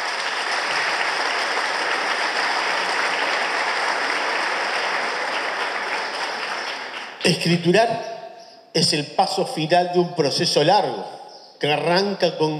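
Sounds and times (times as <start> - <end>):
audience applause: 0.0 - 7.6
speech: 7.3 - 8.1, 8.7 - 12.5.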